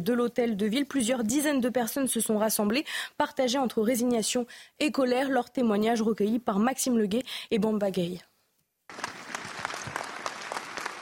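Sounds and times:
speech: 0.0s - 8.3s, 8.9s - 9.2s
crowd applauding at a support rally: 8.9s - 10.9s.

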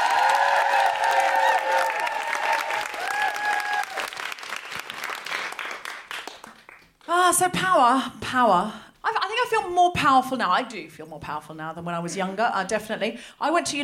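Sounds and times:
audience applause greeting a comedian arriving on stage: 0.0s - 7.1s
speech: 7.3s - 8.8s, 9.4s - 13.8s.

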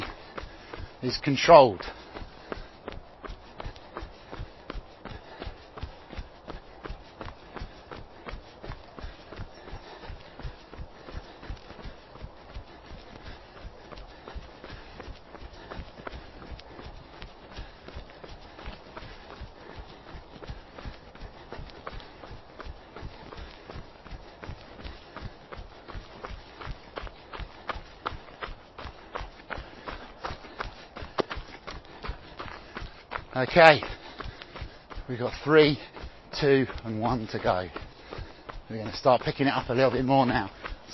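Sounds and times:
running footsteps: 0.0s - 40.9s
speech: 1.0s - 2.0s, 33.5s - 34.0s, 35.1s - 37.9s, 38.7s - 40.9s.

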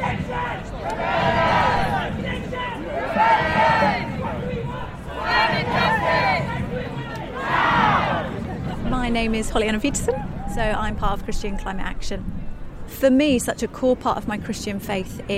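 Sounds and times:
protest march crowd chanting: 0.0s - 8.8s
murmur of many people: 0.0s - 13.0s
speech: 9.2s - 15.3s.

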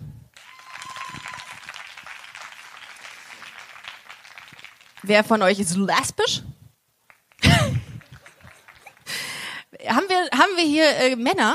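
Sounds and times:
audience clapping: 0.3s - 5.7s, 7.0s - 9.5s
speech: 5.0s - 6.5s, 10.6s - 11.5s
laughter: 7.4s - 9.2s.

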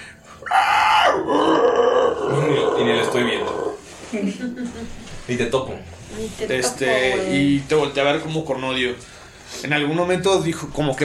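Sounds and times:
person vocally imitating a creature's scream and growl: 0.4s - 3.8s
speech: 4.1s - 11.0s.

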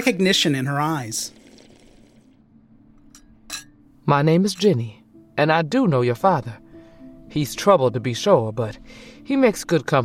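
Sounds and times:
speech: 0.0s - 1.4s, 4.1s - 6.6s, 7.3s - 10.0s
teacup clinking on its saucer: 3.0s - 3.8s, 4.5s - 4.9s.

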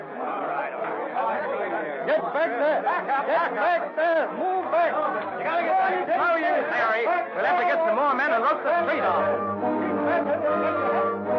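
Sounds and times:
restless crowd murmuring: 0.0s - 11.3s
speech: 2.1s - 10.9s.

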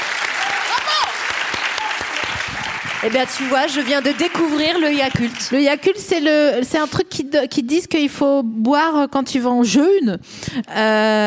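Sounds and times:
applause: 0.0s - 6.4s
speech: 3.0s - 11.2s.

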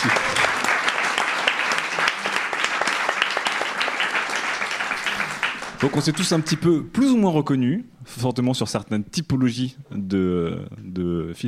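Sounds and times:
crowd applause: 0.0s - 6.7s
speech: 5.8s - 11.4s.

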